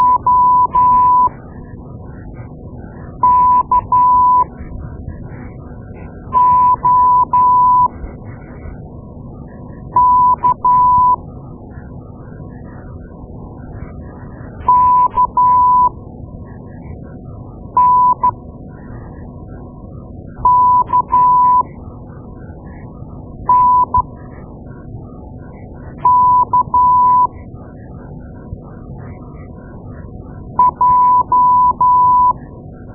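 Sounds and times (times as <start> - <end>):
morse code beeps: 0.0 - 1.3, 3.2 - 4.5, 6.3 - 7.9, 10.0 - 11.2, 14.7 - 15.9, 17.8 - 18.3, 20.5 - 21.6, 23.5 - 24.1, 26.0 - 27.3, 30.6 - 32.4.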